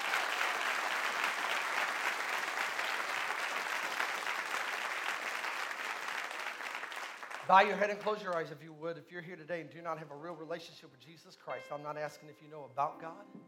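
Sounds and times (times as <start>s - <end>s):
audience applause, hand clapping: 0.0s - 8.6s
speech: 7.5s - 13.4s.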